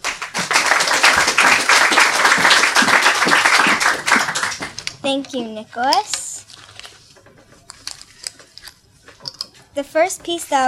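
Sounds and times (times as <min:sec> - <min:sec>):
crowd applauding: 0:00.0 - 0:04.9
speech: 0:05.0 - 0:06.2, 0:09.8 - 0:10.6.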